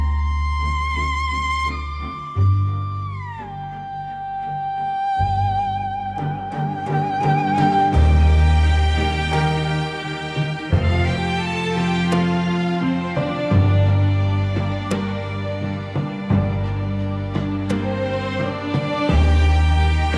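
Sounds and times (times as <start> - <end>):
game background music outside the match: 0.0 - 20.1.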